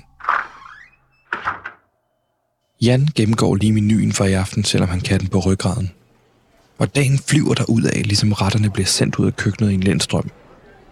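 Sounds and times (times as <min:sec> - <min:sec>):
door knocking thumps: 0:00.0 - 0:01.9
back door creaking open: 0:00.0 - 0:02.3
speech: 0:02.8 - 0:06.0, 0:06.8 - 0:10.4.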